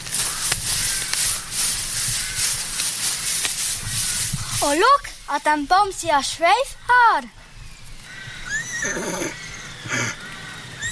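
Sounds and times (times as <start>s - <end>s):
quiet outdoor noise: 0.0s - 10.9s
speech: 4.6s - 7.4s, 8.8s - 9.3s
horse neighing: 8.4s - 10.9s.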